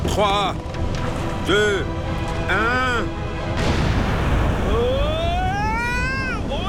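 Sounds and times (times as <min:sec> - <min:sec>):
speech: 0:00.2 - 0:00.7, 0:01.5 - 0:03.3
explosives blowing up a lava mountain: 0:03.5 - 0:06.5.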